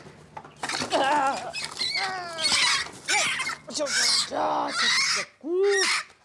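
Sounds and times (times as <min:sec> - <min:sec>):
brooding hen squawking in alarm: 0:01.2 - 0:06.1
speech: 0:03.8 - 0:06.1.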